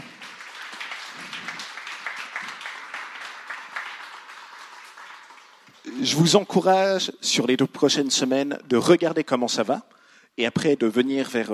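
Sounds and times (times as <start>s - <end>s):
audience applauding: 0.0s - 6.5s
speech: 6.0s - 11.5s.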